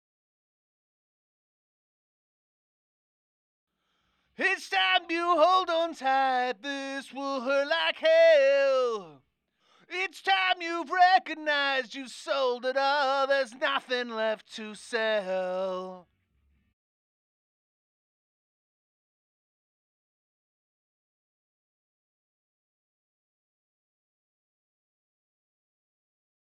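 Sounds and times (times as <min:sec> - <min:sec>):
vocal verses: 0:04.3 - 0:16.1.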